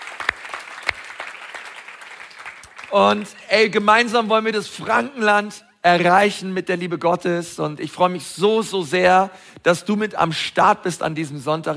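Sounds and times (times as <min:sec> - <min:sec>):
audience applause: 0:00.0 - 0:03.4
speech: 0:02.9 - 0:11.7.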